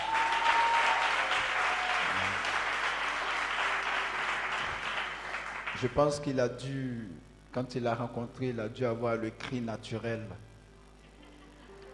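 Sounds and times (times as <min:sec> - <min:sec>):
church congregation applauding: 0:00.0 - 0:06.2
speech: 0:05.8 - 0:10.5.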